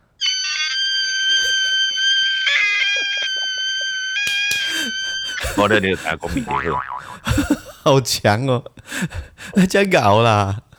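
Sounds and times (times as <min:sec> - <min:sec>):
very high-pitched dolphin-like voice: 0:00.2 - 0:04.2
laughter: 0:01.0 - 0:08.2
speech: 0:05.6 - 0:10.6.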